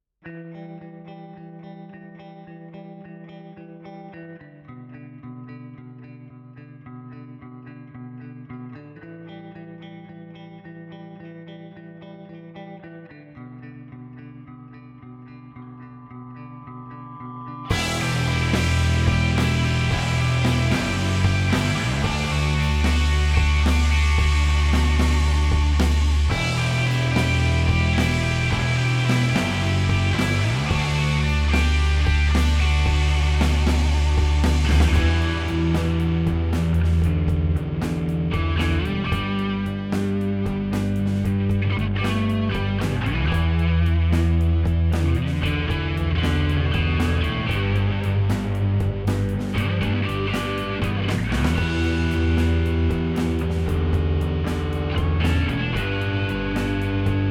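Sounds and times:
guitars: 0.2 - 57.2.

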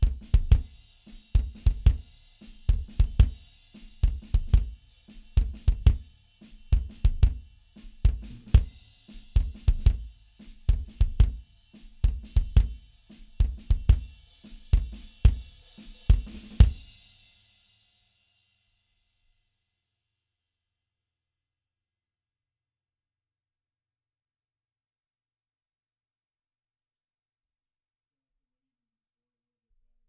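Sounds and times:
mono drums: 0.0 - 18.0.

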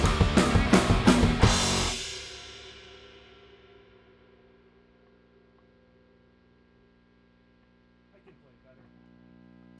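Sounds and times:
drum stems: 0.0 - 5.3.

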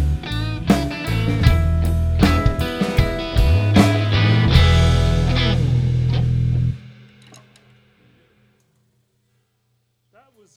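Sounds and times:
blues jam: 0.0 - 7.7.

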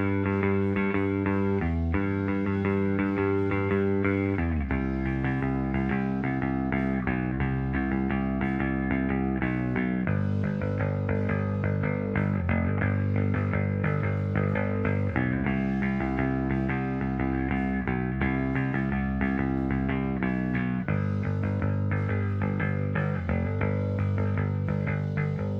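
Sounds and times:
mono synth bass: 0.0 - 25.5.

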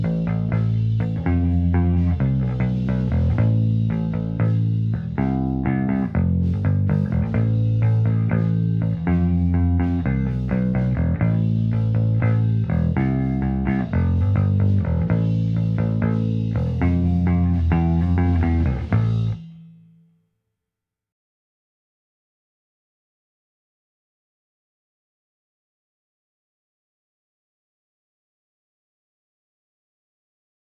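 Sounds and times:
bass recorded in mono with D112 microphone: 0.0 - 20.0.

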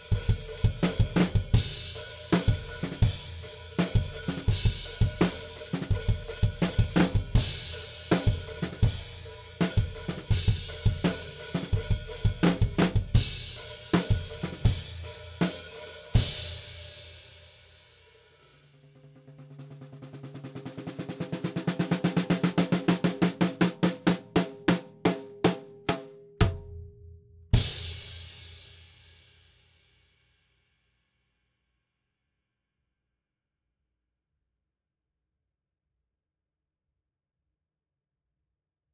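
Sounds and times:
drums: 0.0 - 30.2.

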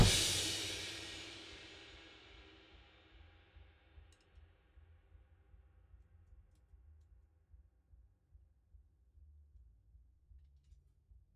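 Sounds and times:
drums: 0.0 - 2.8.

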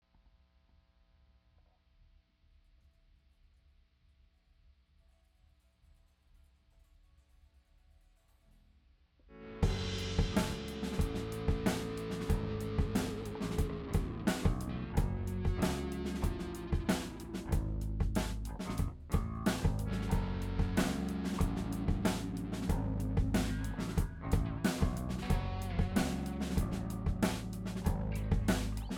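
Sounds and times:
drum stems: 9.6 - 28.9.

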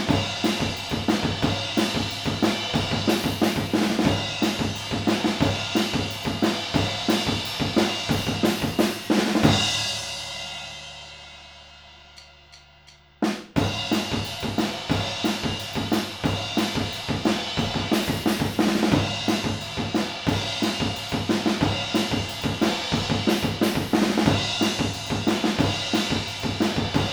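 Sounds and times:
fathead drums recorded with mid-side stereo: 0.0 - 27.1.

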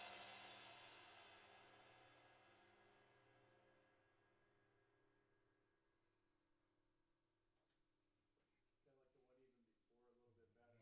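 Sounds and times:
drums recorded overhead in stereo: 0.0 - 3.2.

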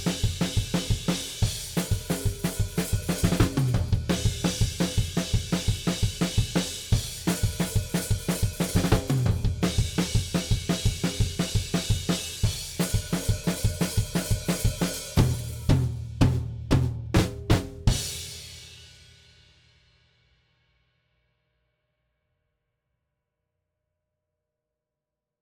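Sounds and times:
drums: 0.0 - 20.3.

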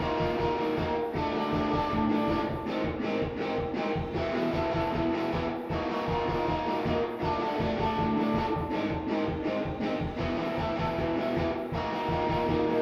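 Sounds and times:
guitar: 0.0 - 12.7.

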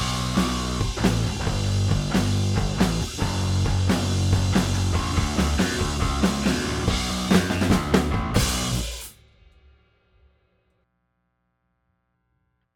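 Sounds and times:
bass: 0.0 - 9.2
drums: 0.0 - 10.7.

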